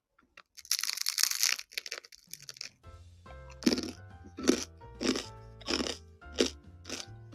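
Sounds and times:
crinkly rustle: 0.4 - 2.8
crisp crunchy chewing of bread: 0.4 - 2.8, 3.5 - 7.3.

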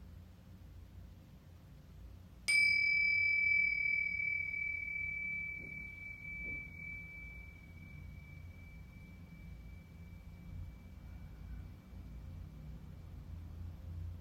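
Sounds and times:
singing bowl struck and ringing: 2.5 - 12.5.

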